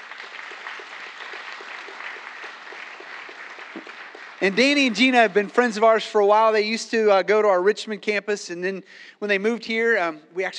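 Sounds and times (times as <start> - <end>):
audience applauding a couple onto a stage: 0.0 - 6.0
speech: 3.8 - 10.5.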